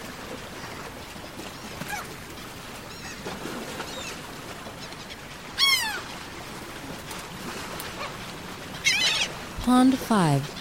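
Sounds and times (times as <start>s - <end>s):
gull mewed cries: 1.8s - 2.1s, 4.9s - 6.2s, 8.8s - 9.4s
speech: 9.7s - 10.5s.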